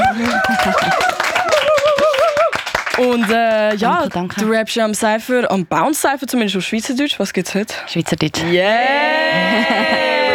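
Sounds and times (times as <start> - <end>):
laughter: 0.0 - 2.5, 8.8 - 10.3
applause: 0.0 - 4.4
speech: 3.0 - 10.3.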